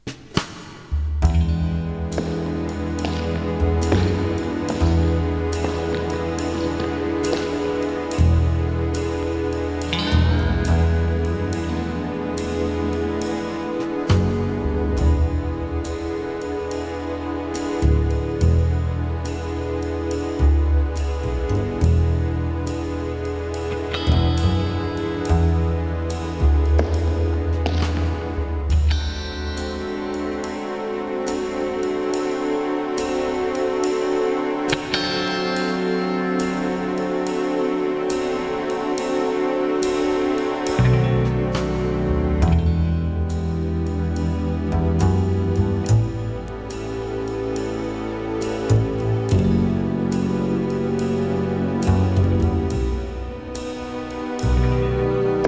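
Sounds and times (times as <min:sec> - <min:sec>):
jazz music: 0:01.2 - 0:55.4.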